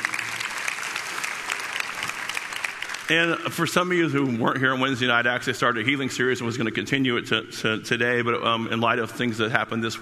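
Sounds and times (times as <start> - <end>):
audience applause: 0.0 - 3.7
speech: 3.1 - 10.0.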